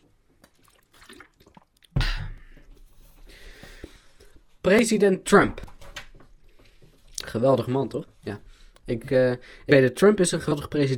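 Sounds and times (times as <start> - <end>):
slurping and swallowing: 0.4 - 2.8
person sipping water: 0.4 - 4.4
faint breathing: 2.2 - 4.4, 6.4 - 7.1, 8.4 - 8.8, 9.4 - 9.7
speech: 4.7 - 5.7, 7.4 - 10.9.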